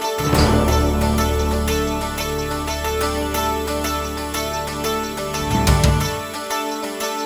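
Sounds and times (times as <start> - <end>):
contemporary music: 0.1 - 7.1.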